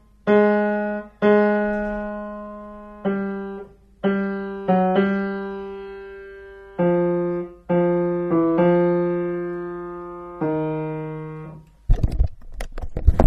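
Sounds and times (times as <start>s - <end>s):
bass piano notes: 0.0s - 11.7s.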